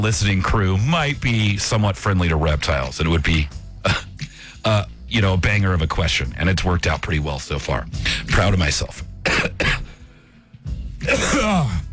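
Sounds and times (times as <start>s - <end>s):
speech: 0.0s - 9.8s
person coughing: 3.8s - 4.2s, 9.2s - 10.0s, 11.0s - 11.9s.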